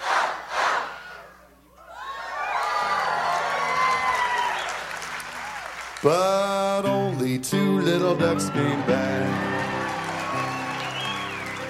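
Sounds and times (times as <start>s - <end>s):
audience clapping: 2.5s - 6.8s, 8.3s - 11.6s
speech: 6.0s - 9.5s.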